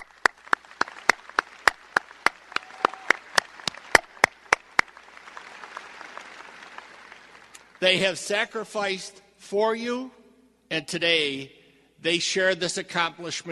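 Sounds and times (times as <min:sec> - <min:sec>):
round of applause: 0:00.0 - 0:07.9
speech: 0:07.8 - 0:13.5.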